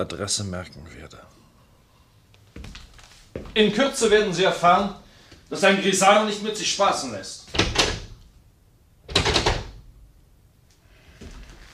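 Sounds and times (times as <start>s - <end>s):
speech: 0.0s - 1.4s, 3.6s - 7.4s
door slamming shut: 7.5s - 8.2s, 9.1s - 9.8s.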